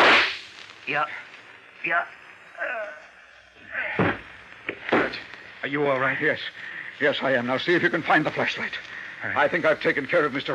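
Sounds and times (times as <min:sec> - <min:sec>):
gunshots in a radio drama: 0:00.0 - 0:00.4
speech: 0:00.9 - 0:03.0, 0:05.1 - 0:10.5.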